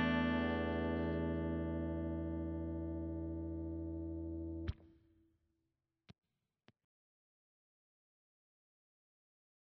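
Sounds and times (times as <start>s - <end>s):
Les Paul 60s electric guitar on bridge pickup with clean tone: 0.0s - 4.9s.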